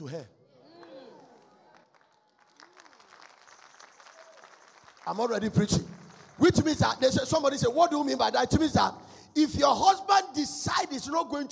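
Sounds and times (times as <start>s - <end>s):
speech: 0.0s - 0.4s, 5.0s - 11.4s
crowd applause: 1.1s - 7.1s.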